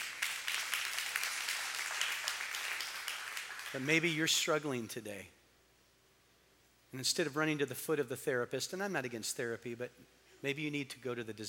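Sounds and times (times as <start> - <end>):
audience clapping: 0.0 - 4.1
speech: 3.7 - 5.4, 6.9 - 11.4.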